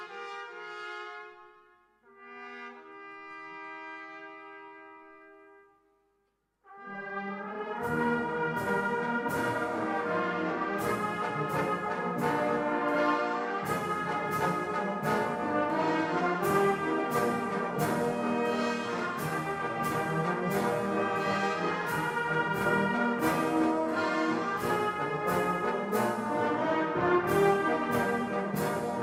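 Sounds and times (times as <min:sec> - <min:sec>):
fanfare: 0:06.7 - 0:29.0.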